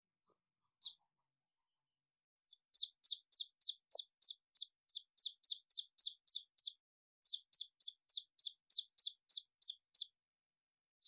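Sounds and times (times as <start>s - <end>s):
red junglefowl chick peeping: 2.5s - 10.1s.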